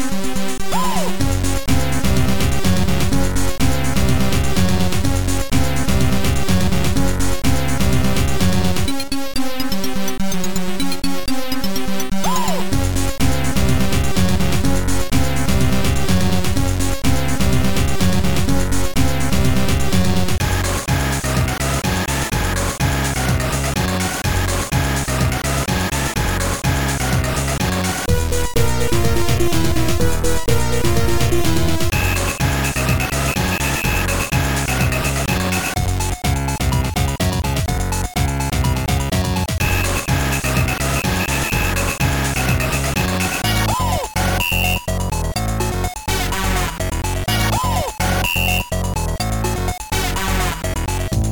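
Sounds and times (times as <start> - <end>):
techno party music: 0.2 - 51.2.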